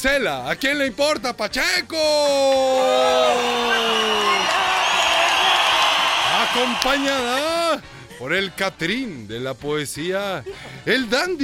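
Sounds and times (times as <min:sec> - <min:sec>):
speech: 0:00.0 - 0:04.7, 0:06.5 - 0:11.4
audience applause: 0:02.8 - 0:07.5.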